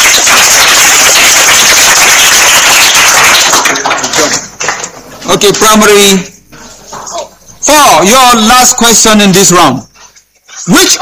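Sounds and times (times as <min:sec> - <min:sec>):
round of applause from a crowd: 0:00.0 - 0:05.1
speech: 0:05.3 - 0:06.3, 0:07.8 - 0:09.9, 0:10.7 - 0:11.0.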